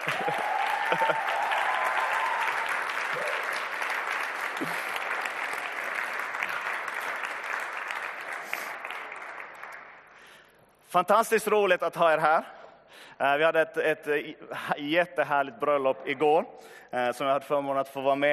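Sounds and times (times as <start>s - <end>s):
crowd applause: 0.0s - 10.4s
speech: 10.9s - 12.6s, 13.2s - 18.3s.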